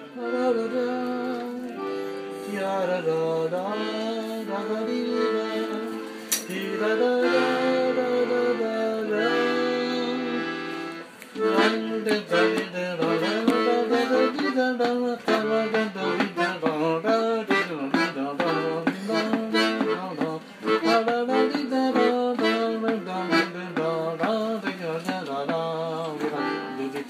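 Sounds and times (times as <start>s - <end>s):
Breton plinn sung dance song: 0.2s - 27.0s.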